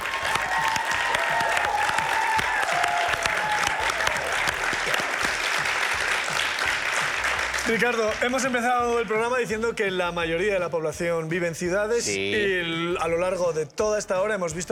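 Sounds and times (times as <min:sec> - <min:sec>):
audience applause: 0:00.0 - 0:08.7
speech: 0:07.7 - 0:14.7.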